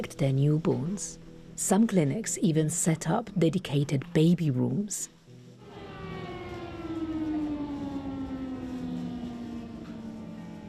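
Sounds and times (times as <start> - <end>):
speech: 0.0 - 5.2
air raid alarm siren: 5.6 - 10.6.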